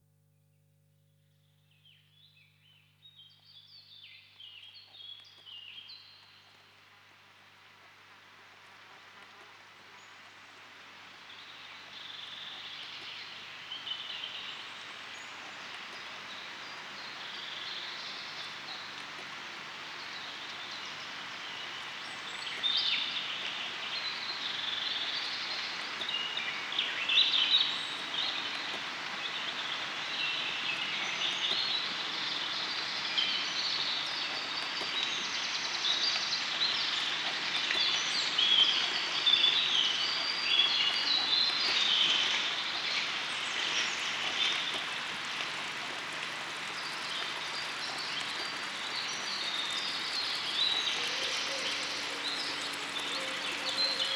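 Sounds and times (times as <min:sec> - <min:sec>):
stream in a forest: 0:03.2 - 0:54.1
Lapland bunting singing: 0:45.7 - 0:54.1.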